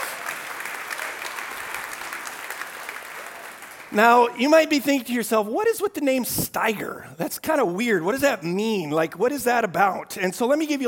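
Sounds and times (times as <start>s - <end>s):
audience applause: 0.0s - 4.4s
speech: 3.9s - 10.8s.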